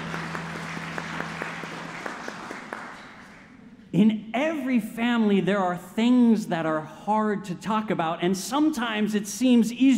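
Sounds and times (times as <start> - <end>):
audience applause: 0.0 - 3.6
speech: 3.9 - 9.9.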